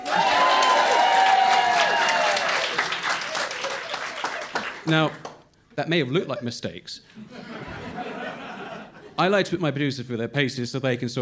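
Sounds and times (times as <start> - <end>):
live show audience clapping and cheering: 0.0 - 5.5
speech: 4.9 - 7.4, 9.2 - 11.1
laughter: 5.9 - 6.6, 7.2 - 9.2.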